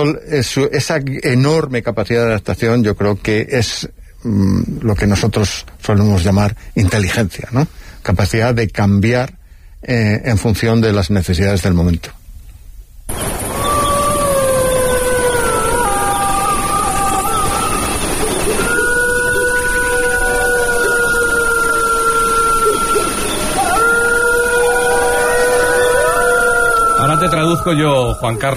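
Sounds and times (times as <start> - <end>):
speech: 0.0 - 12.2, 27.2 - 28.5
wolf pack howling in chorus: 13.1 - 28.5.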